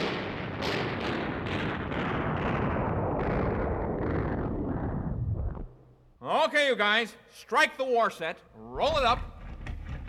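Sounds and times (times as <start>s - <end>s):
battle gunfire sound effect: 0.0s - 4.8s
speech: 6.4s - 9.3s.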